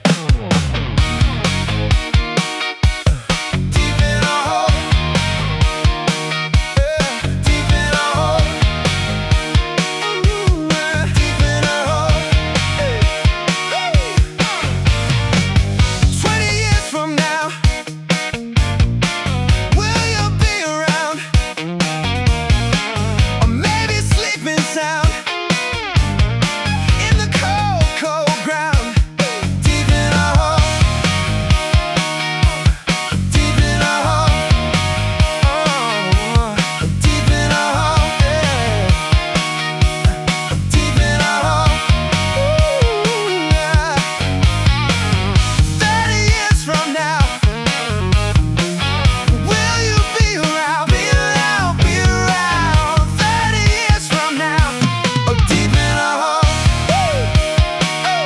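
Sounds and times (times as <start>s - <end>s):
indie G-funk music: 0.0s - 58.2s.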